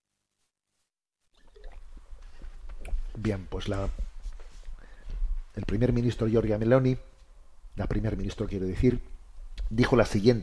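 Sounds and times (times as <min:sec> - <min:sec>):
speaker taking a sip of water: 0:01.4 - 0:03.2
speech: 0:03.2 - 0:04.0, 0:05.6 - 0:07.1, 0:07.8 - 0:10.4.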